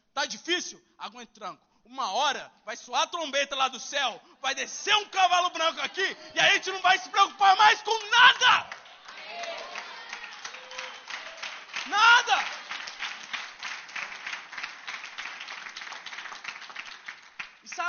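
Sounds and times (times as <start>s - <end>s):
speech: 0.2s - 8.8s, 11.9s - 12.5s
audience applauding during a sermon: 5.9s - 17.8s.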